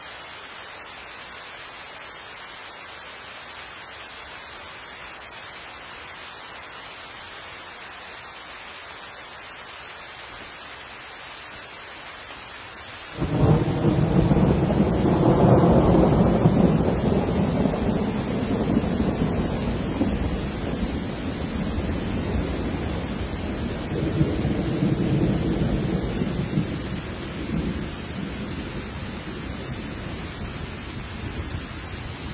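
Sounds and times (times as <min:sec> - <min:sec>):
rain: 0:00.0 - 0:32.3
thunder: 0:13.2 - 0:29.9.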